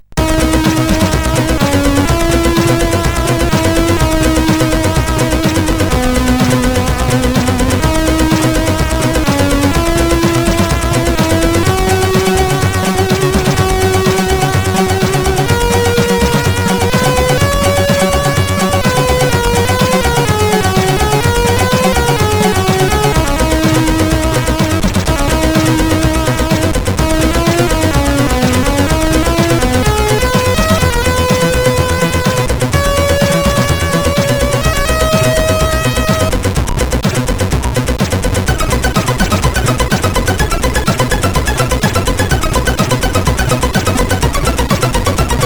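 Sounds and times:
SID CSG8580 chip music: 0.1 - 45.4.

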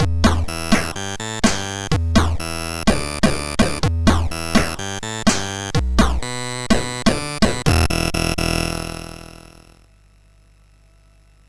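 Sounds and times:
MOS6581 SID chip synth sound: 0.0 - 9.7.

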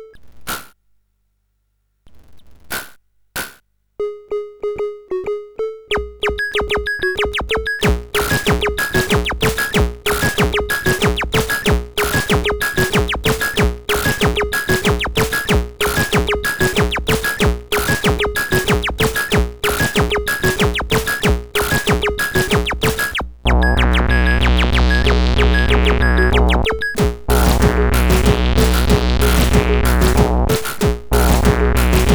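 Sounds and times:
beat on SID CSG8580R5 chip: 4.0 - 32.1.

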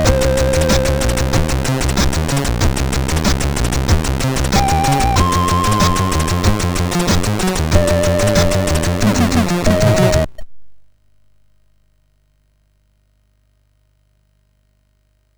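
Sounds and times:
horror music on a MOS6581R4 sound chip: 0.0 - 10.3.

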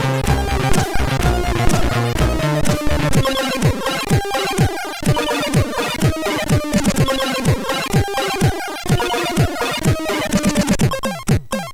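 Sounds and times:
SID chip drums from a MOS6581R3: 0.0 - 11.7.

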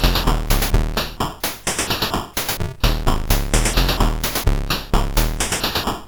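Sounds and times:
chiptune improvisation on CSG8580 SID chip: 0.0 - 1.3, 2.8 - 5.9.

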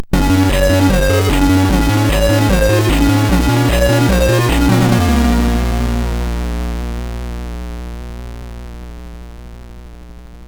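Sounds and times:
MOS6581R4 SID chip game music: 0.0 - 6.5.

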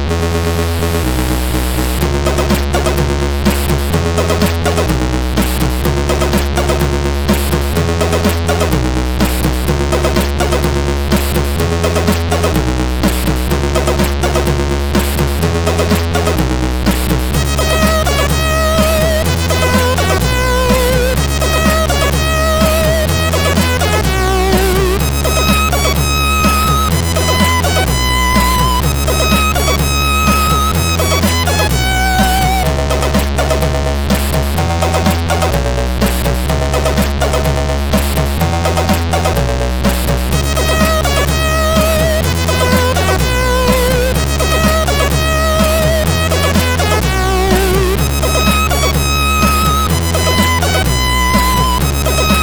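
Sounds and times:
SID chip tune on CSG8580R5: 0.2 - 52.4.

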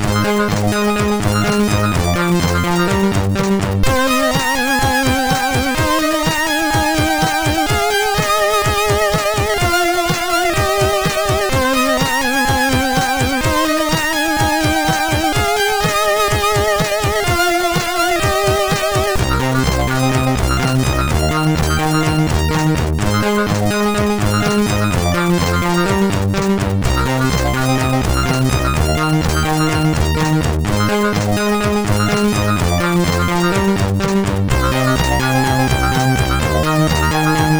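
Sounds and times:
chiptune music on a SID chip: 0.0 - 37.5.

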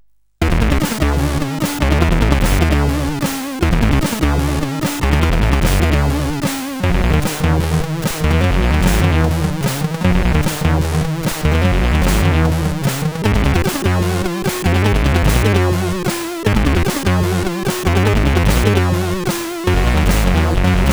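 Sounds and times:
scanner CSG8580R5: 0.4 - 20.9.

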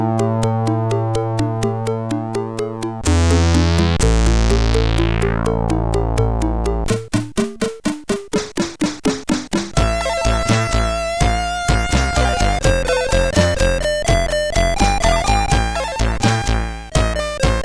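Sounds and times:
bassline on CSG8580R5 SID chip: 0.0 - 17.6.

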